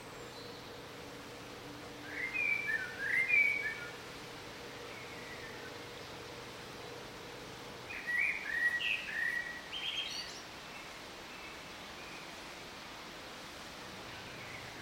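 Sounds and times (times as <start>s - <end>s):
bird song of whistles and chirps: 2.0s - 4.0s, 7.9s - 10.4s.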